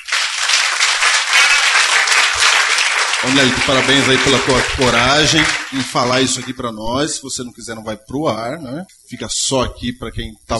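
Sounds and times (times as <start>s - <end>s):
audience applause: 0.0s - 6.6s
speech: 3.2s - 10.5s.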